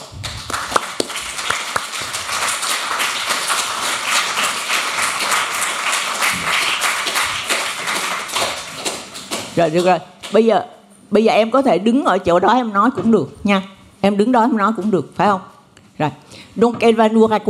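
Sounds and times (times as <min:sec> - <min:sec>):
audience applause: 0:00.2 - 0:09.4
speech: 0:09.6 - 0:17.4.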